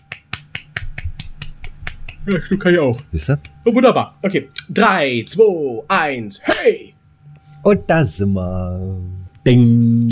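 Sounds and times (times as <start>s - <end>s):
hands clapping: 0.0s - 3.7s
speech: 2.3s - 7.0s, 7.6s - 10.0s.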